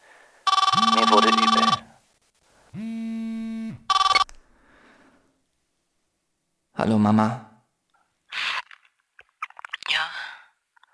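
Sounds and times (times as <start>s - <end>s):
mobile phone ringing: 0.5s - 1.9s, 2.8s - 4.3s
speech: 6.9s - 7.4s.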